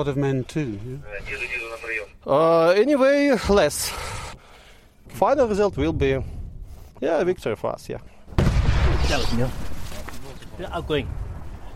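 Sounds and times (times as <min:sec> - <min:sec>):
speech: 0:00.0 - 0:01.5, 0:02.2 - 0:04.2, 0:05.1 - 0:06.4, 0:07.0 - 0:08.1, 0:09.1 - 0:09.6, 0:10.6 - 0:11.2
mortar firing from frontline positions: 0:08.3 - 0:11.7.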